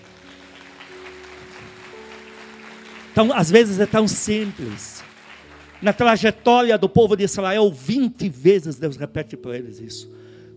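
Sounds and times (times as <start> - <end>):
audience applause: 0.0 - 6.6
speech: 3.2 - 5.0, 5.8 - 10.2.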